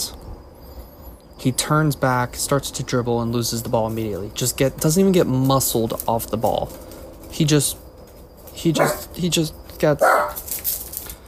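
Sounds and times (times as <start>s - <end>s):
speech: 1.4s - 7.8s, 8.6s - 10.4s
dog barking: 8.8s - 9.1s, 10.0s - 10.4s.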